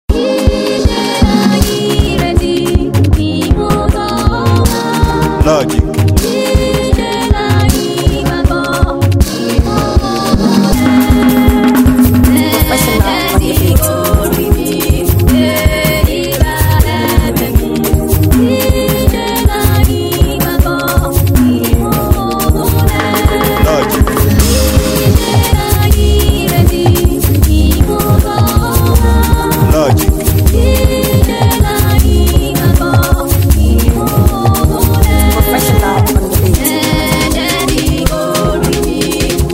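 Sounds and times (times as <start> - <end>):
professional music beat: 0.1 - 39.5.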